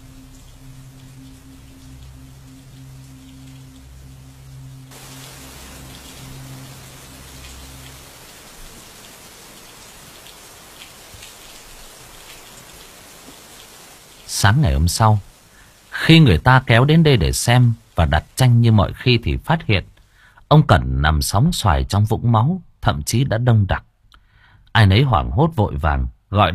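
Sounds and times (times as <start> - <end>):
heavy rain pouring on tin roof of a small attic: 0.0 - 20.0
speech: 14.4 - 15.3, 16.1 - 19.9, 20.5 - 23.9, 24.8 - 26.5.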